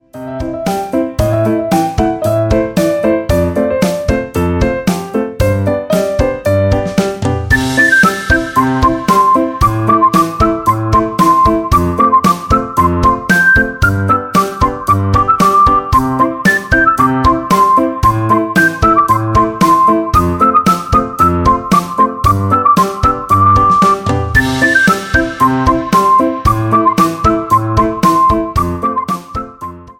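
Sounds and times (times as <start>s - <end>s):
fun rhythm: 0.1s - 29.9s.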